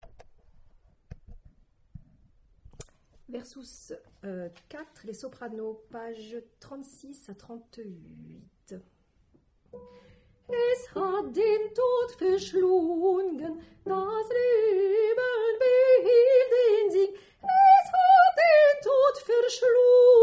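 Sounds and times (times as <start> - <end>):
soprano singing: 9.8 - 20.2.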